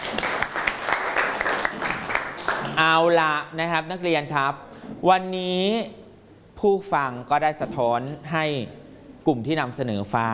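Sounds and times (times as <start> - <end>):
classroom students clapping: 0.0 - 2.8
speech: 2.8 - 6.0, 6.6 - 10.3.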